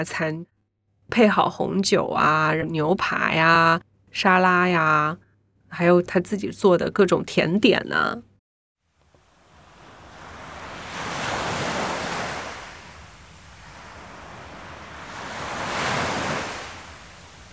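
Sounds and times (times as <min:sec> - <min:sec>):
speech: 0:00.0 - 0:00.5, 0:01.1 - 0:08.3
ocean waves: 0:09.1 - 0:17.5.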